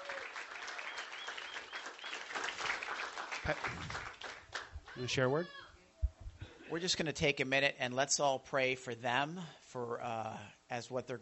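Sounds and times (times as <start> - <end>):
faint voices and cheers: 0.0 - 0.4
audience applause for students: 0.0 - 5.1
speech: 3.4 - 4.2, 5.0 - 5.6, 6.7 - 11.1.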